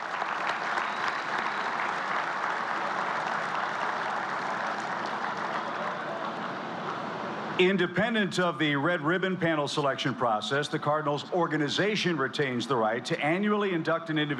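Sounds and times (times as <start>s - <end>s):
crowd applause: 0.0s - 7.6s
speech: 7.6s - 14.3s.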